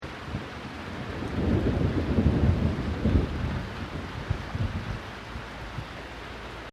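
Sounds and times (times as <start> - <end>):
thunder: 0.2 - 5.0.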